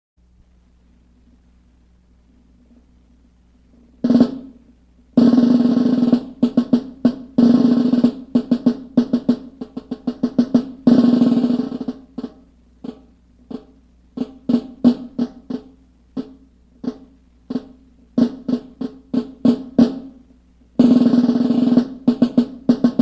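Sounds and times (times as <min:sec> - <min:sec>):
snare drum: 0:04.0 - 0:04.6, 0:05.2 - 0:20.2, 0:20.8 - 0:23.0.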